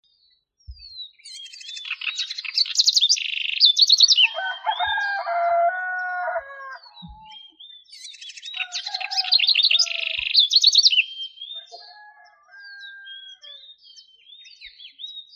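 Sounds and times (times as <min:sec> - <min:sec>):
bird song with sliding whistles, sharp chirps and a buzzy trill: 0:00.1 - 0:15.3.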